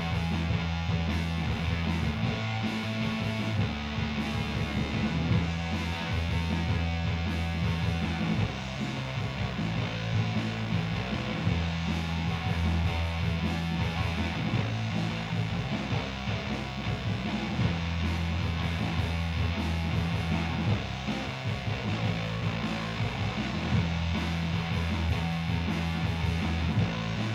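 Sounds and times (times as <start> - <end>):
bass guitar recorded in mono through a dynamic microphone: 0.0 - 27.3.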